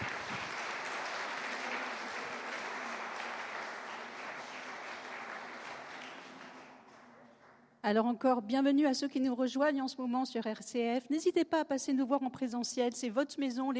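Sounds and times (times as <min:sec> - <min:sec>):
audience applauding: 0:00.0 - 0:07.6
speech: 0:07.8 - 0:13.7.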